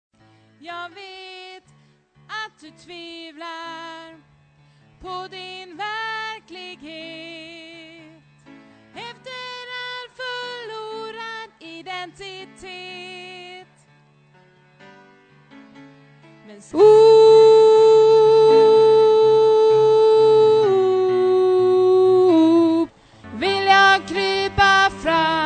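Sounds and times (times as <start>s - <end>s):
bass voice part singing: 16.7s - 25.4s.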